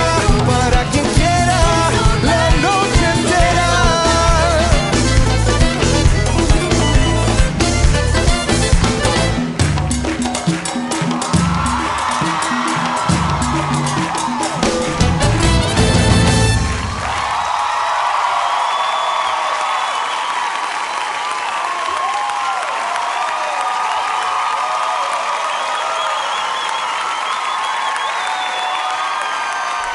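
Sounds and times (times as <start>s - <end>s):
music: 0.0s - 17.4s
crowd applause and cheering: 0.0s - 29.9s
whoops and whistles: 25.4s - 29.9s.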